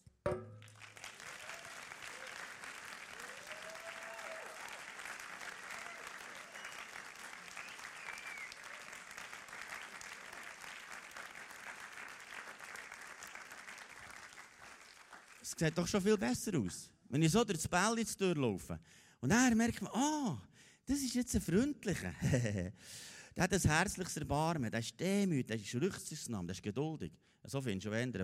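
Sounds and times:
speech: 0:00.2 - 0:00.5, 0:15.5 - 0:28.2
audience applause: 0:00.7 - 0:15.6
laughter: 0:22.1 - 0:22.7.

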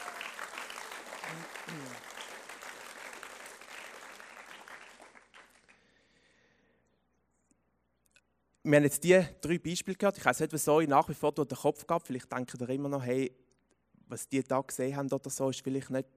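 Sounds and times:
applause: 0:00.0 - 0:06.2
speech: 0:08.7 - 0:13.4, 0:14.1 - 0:16.1.

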